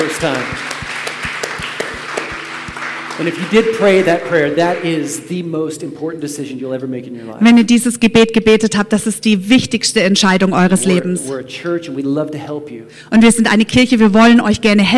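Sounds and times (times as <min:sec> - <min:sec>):
speech: 0:00.0 - 0:00.8, 0:03.2 - 0:14.9
audience applause: 0:00.0 - 0:05.2
crowd noise: 0:00.0 - 0:05.4.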